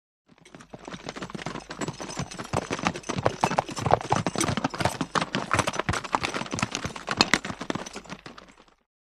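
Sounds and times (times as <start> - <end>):
4 horses passing: 0.3 - 8.9.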